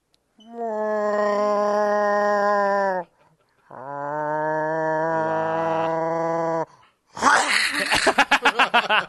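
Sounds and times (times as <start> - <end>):
person imitating a cat: 0.4 - 3.1, 3.7 - 7.7
laughter: 7.5 - 9.0.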